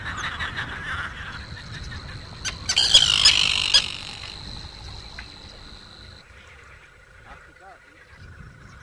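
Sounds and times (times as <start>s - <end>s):
Dalmatian pelicans moaning in chorus: 0.2s - 6.2s.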